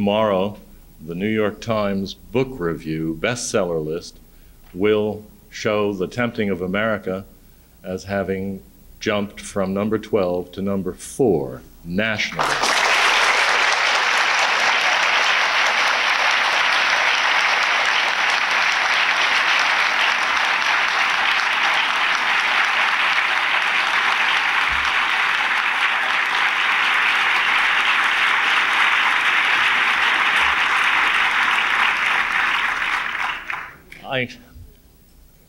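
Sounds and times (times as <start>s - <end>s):
speech: 0.0s - 12.7s, 34.2s - 34.4s
audience applause: 12.3s - 33.8s.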